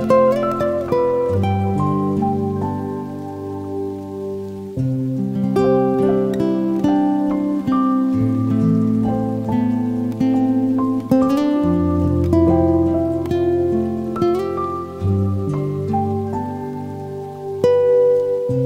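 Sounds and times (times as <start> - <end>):
guitar playing: 0.0 - 18.6
rain: 0.0 - 18.6.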